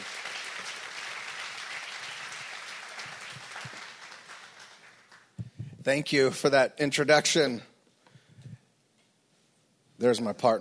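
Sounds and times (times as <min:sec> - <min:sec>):
audience applauding at a religious gathering: 0:00.0 - 0:05.4
speech: 0:05.8 - 0:07.7, 0:10.0 - 0:10.5.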